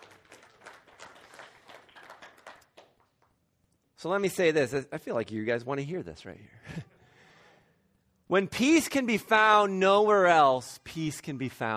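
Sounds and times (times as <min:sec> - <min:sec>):
audience clapping: 0:00.0 - 0:03.4
speech: 0:04.0 - 0:06.8, 0:08.3 - 0:11.7.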